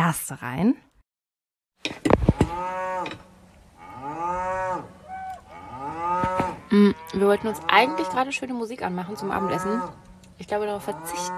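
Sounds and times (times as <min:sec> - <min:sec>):
speech: 0:00.1 - 0:00.9, 0:01.8 - 0:03.3, 0:06.7 - 0:11.3
cattle mooing outside a parked bus: 0:02.4 - 0:03.2, 0:03.8 - 0:11.3.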